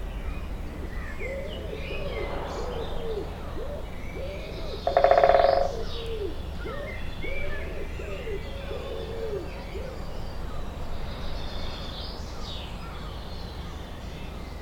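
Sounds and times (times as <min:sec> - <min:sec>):
faint bird calls: 0:00.1 - 0:14.5
doves cooing: 0:00.6 - 0:10.6
woodpecker drumming: 0:03.6 - 0:09.5.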